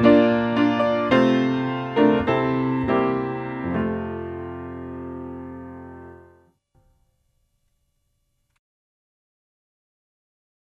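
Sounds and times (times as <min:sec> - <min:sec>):
piano playing a hymn: 0:00.0 - 0:06.4.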